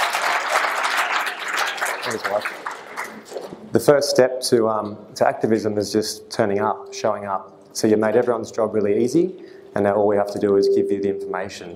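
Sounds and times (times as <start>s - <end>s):
audience clapping: 0.0s - 3.6s
speech: 2.1s - 11.7s.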